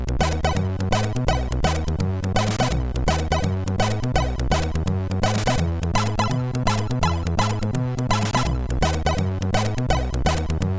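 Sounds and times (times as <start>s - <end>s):
rock and roll music on MOS6581R2 sound chip: 0.2s - 10.7s.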